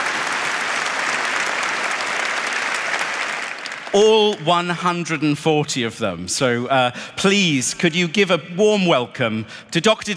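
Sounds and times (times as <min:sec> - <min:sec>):
audience applause: 0:00.0 - 0:04.4
speech: 0:03.9 - 0:10.1.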